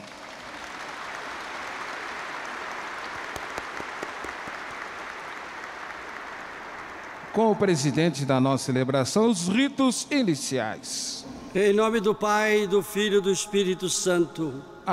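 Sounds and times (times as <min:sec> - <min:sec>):
audience applause: 0:00.0 - 0:07.7
speech: 0:07.4 - 0:14.9.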